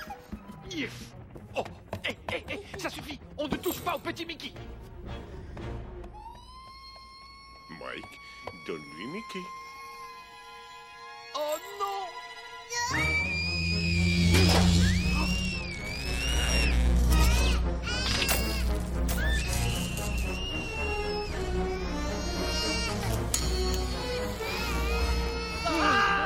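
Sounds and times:
speech: 0:00.8 - 0:05.2, 0:07.9 - 0:09.6, 0:11.4 - 0:13.2
small child screaming and crying: 0:06.2 - 0:26.2.

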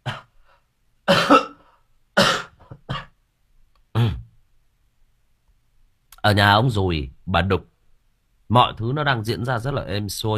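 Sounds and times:
person coughing: 0:00.0 - 0:00.3, 0:01.1 - 0:03.2, 0:04.0 - 0:04.3
speech: 0:06.3 - 0:07.7, 0:08.5 - 0:10.3.

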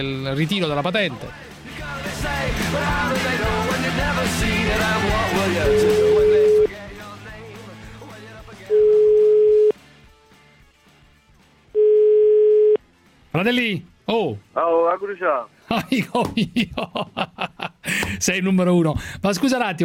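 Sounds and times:
speech: 0:00.0 - 0:01.5, 0:02.2 - 0:06.4, 0:13.4 - 0:19.8
telephone ringback tone as a phone call is placed: 0:05.7 - 0:06.7, 0:08.7 - 0:09.7, 0:11.8 - 0:12.8
laughter: 0:15.7 - 0:18.2.

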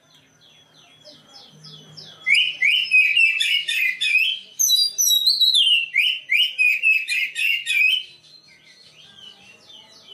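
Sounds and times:
black-breasted Oriental magpie-robin song: 0:01.7 - 0:09.5.

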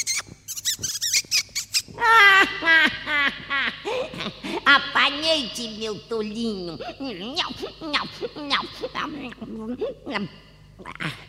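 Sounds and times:
mouse squeaking: 0:00.0 - 0:02.0
speech: 0:02.6 - 0:11.2.

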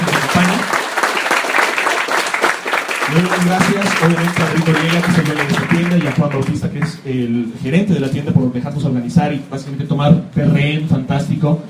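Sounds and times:
audience applause: 0:00.0 - 0:06.9
speech: 0:03.1 - 0:11.6.

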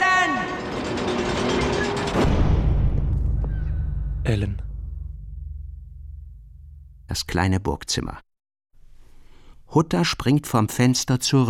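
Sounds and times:
large gate slamming shut: 0:00.2 - 0:05.0
speech: 0:04.3 - 0:04.7, 0:07.1 - 0:08.3, 0:09.7 - 0:11.4.

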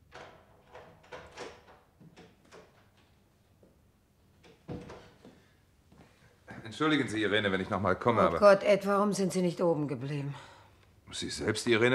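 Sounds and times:
door being unlocked with a key and opened: 0:00.0 - 0:03.0
speech: 0:06.7 - 0:10.5, 0:11.1 - 0:11.9.

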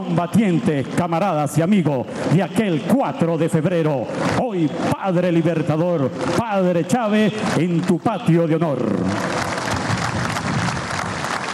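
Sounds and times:
speech: 0:00.1 - 0:09.3
crowd applause during a minute-long tribute at a Venezuelan military decoration ceremony: 0:04.0 - 0:11.5.

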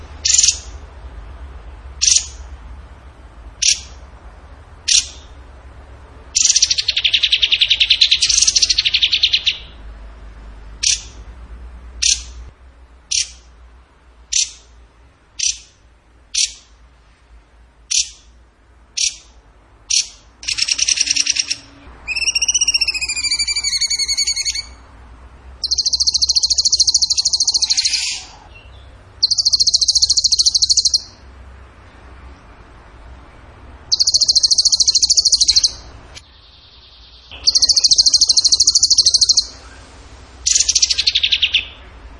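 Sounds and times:
bird trilling: 0:00.2 - 0:00.8, 0:02.0 - 0:02.4, 0:03.6 - 0:04.0, 0:04.9 - 0:05.4, 0:06.4 - 0:09.8, 0:10.8 - 0:11.2, 0:12.0 - 0:12.4, 0:13.1 - 0:13.5, 0:14.3 - 0:14.7, 0:15.4 - 0:15.8, 0:16.4 - 0:16.7, 0:17.9 - 0:18.3, 0:19.0 - 0:19.3, 0:19.9 - 0:24.9, 0:25.6 - 0:31.3, 0:33.9 - 0:42.0.

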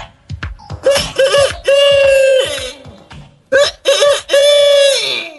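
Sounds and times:
rooster crowing wake-up sound: 0:00.8 - 0:02.8, 0:03.5 - 0:05.3.

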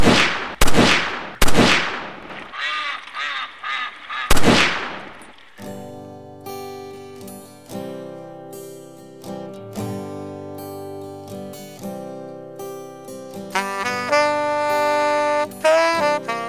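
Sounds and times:
loud gunshot blasts: 0:00.0 - 0:02.5, 0:04.3 - 0:05.3
ducks quacking: 0:02.5 - 0:04.6
sustained tonal musical passage: 0:13.5 - 0:16.4.

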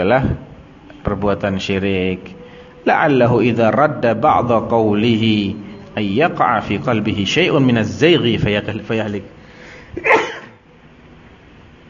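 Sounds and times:
speech: 0:00.0 - 0:10.2
person sneezing: 0:09.9 - 0:10.6.

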